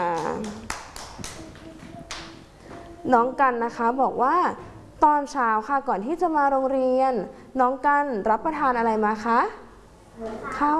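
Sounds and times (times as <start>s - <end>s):
children clapping: 0.0s - 2.5s
speech: 3.1s - 9.6s, 10.2s - 10.7s.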